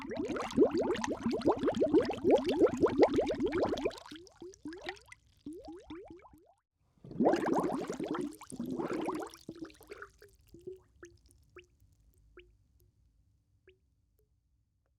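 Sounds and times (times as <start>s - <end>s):
underwater movement: 0.0s - 6.1s, 7.1s - 11.7s.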